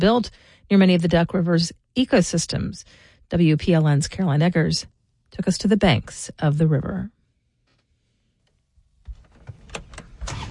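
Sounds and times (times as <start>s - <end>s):
speech: 0.0s - 7.2s
ATV engine starting up: 9.8s - 10.5s.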